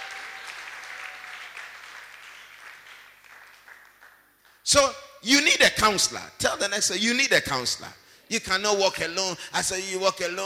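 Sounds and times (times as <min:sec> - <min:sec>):
audience applause: 0:00.0 - 0:04.2
speech: 0:04.7 - 0:10.4.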